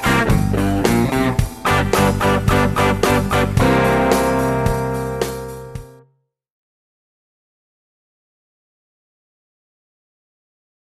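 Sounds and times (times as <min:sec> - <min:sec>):
rhythm guitar: 0:00.0 - 0:06.1.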